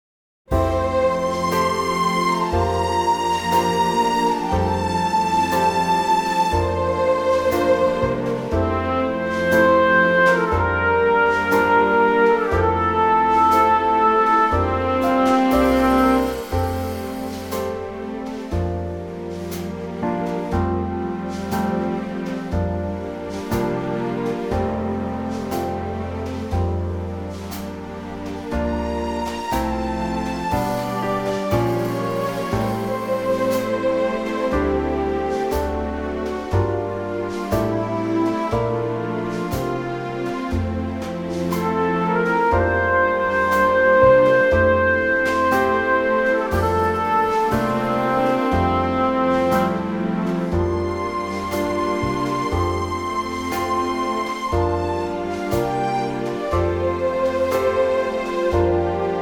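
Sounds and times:
orchestral music in F: 0.5s - 59.2s.

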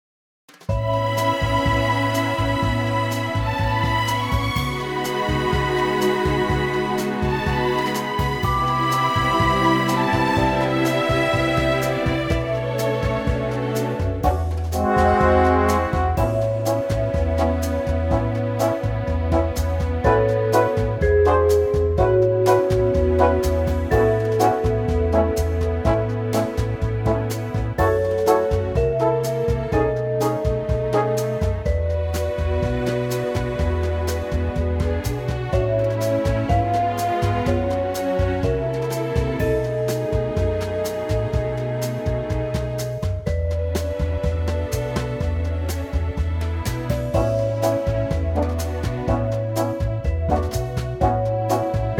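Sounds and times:
orchestral music: 0.7s - 51.9s.

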